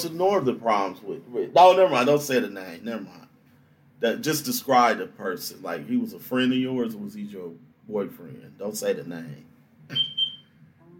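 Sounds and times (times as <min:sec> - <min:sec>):
speech: 0:00.0 - 0:03.3, 0:04.0 - 0:10.1
smoke detector beeping: 0:09.9 - 0:10.6.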